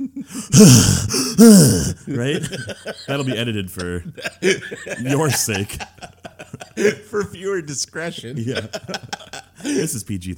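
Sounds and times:
heavy breathing into a microphone: 0:00.2 - 0:02.0
speech: 0:00.2 - 0:06.1, 0:06.8 - 0:10.3
laughter: 0:02.0 - 0:10.0.

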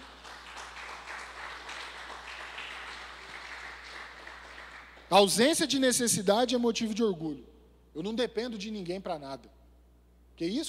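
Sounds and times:
audience applause: 0:00.0 - 0:05.1
speech: 0:05.1 - 0:09.6, 0:10.4 - 0:10.6.

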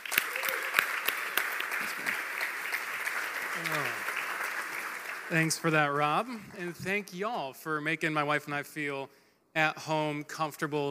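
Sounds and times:
church congregation applauding a guest speaker: 0:00.0 - 0:06.8
speech: 0:05.3 - 0:10.9.

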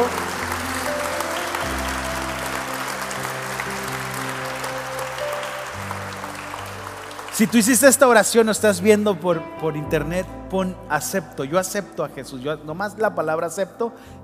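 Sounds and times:
audience applause: 0:00.0 - 0:08.8
speech: 0:07.4 - 0:14.2.

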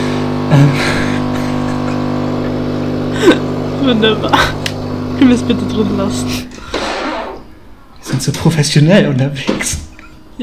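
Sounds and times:
coffee machine running: 0:00.0 - 0:06.8
speech: 0:00.5 - 0:01.0, 0:03.9 - 0:04.6, 0:05.2 - 0:06.5, 0:08.1 - 0:09.8
laughter: 0:00.5 - 0:05.4.

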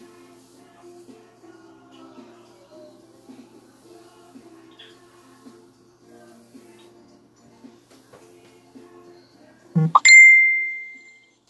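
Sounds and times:
high-pitched electronic beep from a device: 0:09.8 - 0:11.2.

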